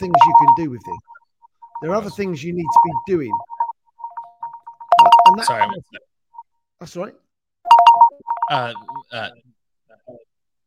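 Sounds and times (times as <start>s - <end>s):
telephone ringing with a bright electronic tone: 0.0s - 1.0s, 1.6s - 5.8s, 7.7s - 9.2s
speech: 0.0s - 1.1s, 1.8s - 3.5s, 5.4s - 6.1s, 6.8s - 7.2s, 8.5s - 9.5s.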